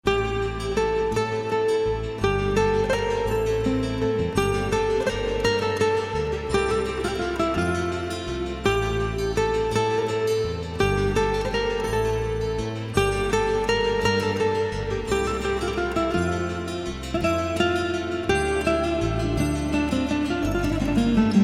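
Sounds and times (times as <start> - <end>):
alaturka guitar playing: 0.0 - 21.4.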